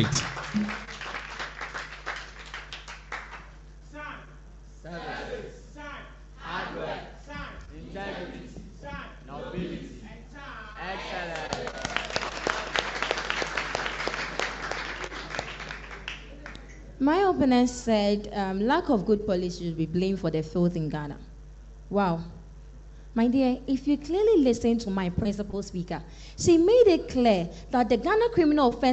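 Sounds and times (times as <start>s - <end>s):
speech: 0.0s - 0.6s, 17.0s - 21.3s, 21.9s - 22.4s, 23.2s - 28.9s
crowd clapping: 0.0s - 3.6s, 11.0s - 16.7s.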